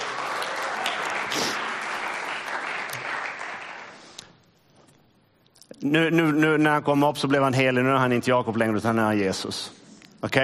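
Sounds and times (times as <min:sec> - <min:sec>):
crowd clapping: 0:00.0 - 0:04.2
speech: 0:05.8 - 0:10.4.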